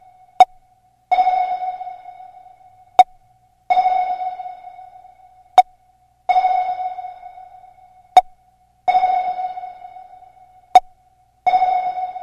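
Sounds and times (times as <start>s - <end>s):
sonar ringtone: 1.1s - 3.0s, 3.7s - 5.6s, 6.3s - 8.2s, 8.9s - 12.2s.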